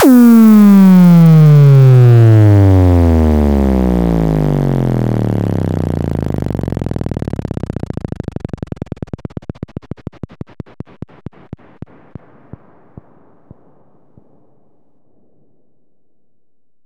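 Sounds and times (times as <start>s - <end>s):
bass house downer effect: 0.0s - 10.3s.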